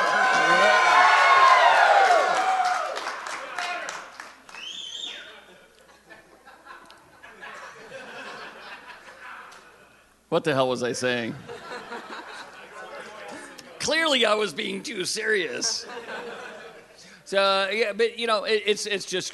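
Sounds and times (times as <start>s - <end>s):
rowdy crowd cheering and shouting next door: 0.0s - 5.2s
laughter: 5.3s - 10.0s, 11.4s - 13.8s, 15.5s - 17.1s
speech: 10.4s - 11.6s, 14.0s - 16.1s, 17.3s - 19.3s.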